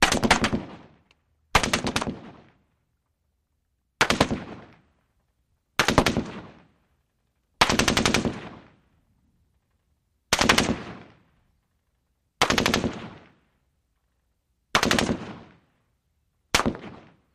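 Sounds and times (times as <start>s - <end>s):
M-16 rifle rapid fire: 0.0s - 0.9s, 1.5s - 2.5s, 4.0s - 4.8s, 5.8s - 6.7s, 7.6s - 8.8s, 10.3s - 11.2s, 12.4s - 13.4s, 14.7s - 15.6s, 16.5s - 17.2s.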